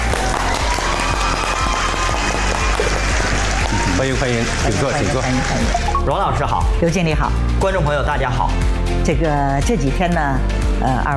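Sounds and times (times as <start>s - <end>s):
warm audience applause: 0.0s - 6.0s
speech: 4.0s - 11.1s.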